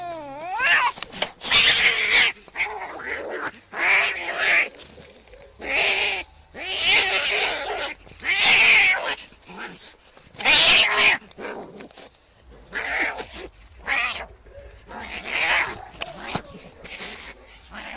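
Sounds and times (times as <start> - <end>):
domestic cat yowling angrily: 0.0 - 4.7, 5.6 - 9.7, 10.4 - 11.2, 14.9 - 17.9.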